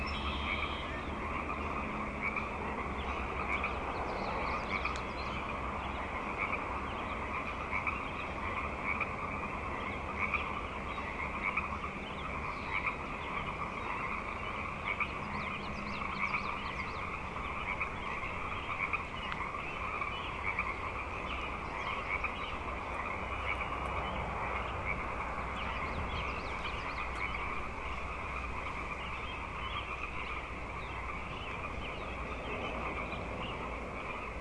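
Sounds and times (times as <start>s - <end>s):
frog chorus: 0.0s - 34.4s
low rumble: 0.0s - 34.4s.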